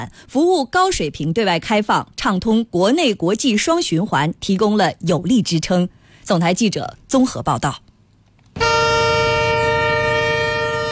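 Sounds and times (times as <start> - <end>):
speech: 0.0 - 7.8
freight train carrying lithium-ion batteries departing Chongqing: 8.6 - 10.9.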